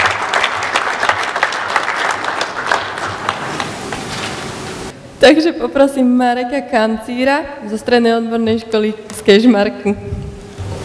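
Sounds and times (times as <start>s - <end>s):
audience applause: 0.0s - 4.9s
speech: 5.2s - 10.2s.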